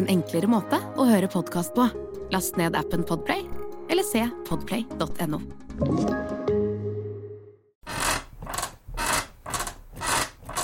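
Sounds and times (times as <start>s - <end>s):
speech: 0.0s - 6.5s
creaky bed creaking: 7.8s - 10.6s.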